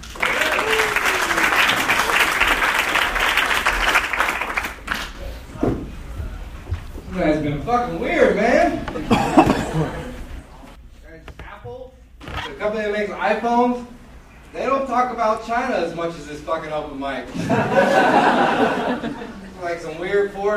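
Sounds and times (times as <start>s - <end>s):
audience applause: 0.0s - 5.2s
speech: 7.5s - 9.1s, 12.6s - 13.9s, 14.9s - 20.5s
laughter: 9.0s - 10.4s, 17.3s - 19.6s.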